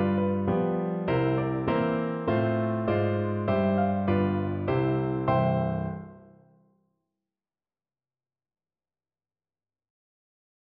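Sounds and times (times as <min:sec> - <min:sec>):
ragtime piano: 0:00.0 - 0:06.2.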